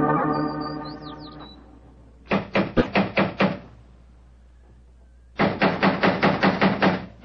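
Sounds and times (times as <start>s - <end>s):
high chirp: 0.2s - 1.7s
rapid knocking on a door: 2.3s - 3.6s, 5.4s - 7.1s.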